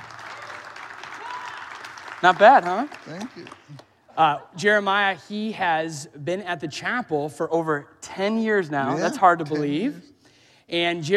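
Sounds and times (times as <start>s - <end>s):
audience round of applause: 0.0s - 3.8s
speech: 2.2s - 10.1s, 10.7s - 11.1s.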